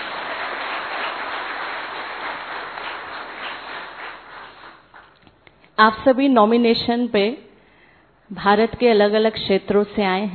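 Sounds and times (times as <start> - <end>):
audience applause: 0.0 - 5.2
speech: 5.8 - 7.4, 8.3 - 10.3.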